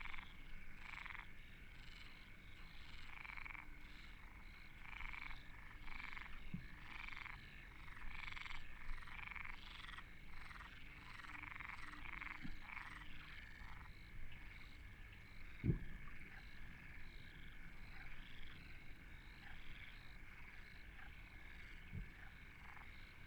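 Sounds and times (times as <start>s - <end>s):
frog chorus croaking at Deltebre in the Ebro Delta: 0.0s - 23.2s.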